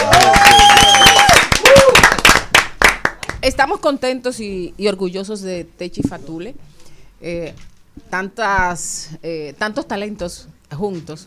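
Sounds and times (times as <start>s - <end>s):
audience applause: 0.0s - 3.4s
speech: 3.5s - 11.2s.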